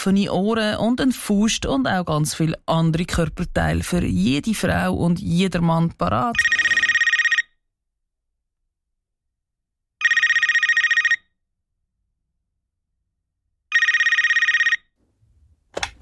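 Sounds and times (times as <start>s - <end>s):
speech: 0.0s - 6.6s
telephone ringing: 6.3s - 7.6s, 10.0s - 11.3s, 13.7s - 15.0s.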